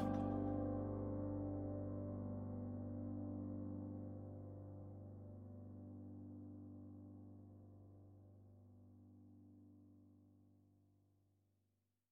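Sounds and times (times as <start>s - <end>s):
on-hold music: 0.0s - 5.0s.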